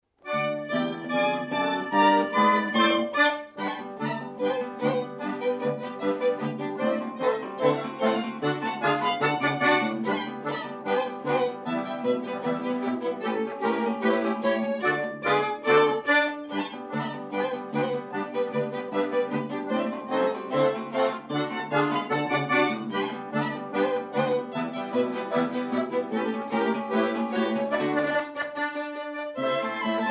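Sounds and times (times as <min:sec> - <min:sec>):
polka music: 0:00.1 - 0:30.1.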